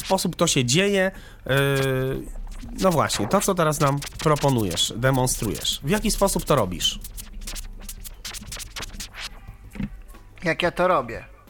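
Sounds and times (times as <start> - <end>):
DJ scratching a record on turntable: 0.0 - 0.4, 1.5 - 10.0
speech: 0.1 - 7.2, 10.4 - 11.3
steady low hum: 1.3 - 10.4.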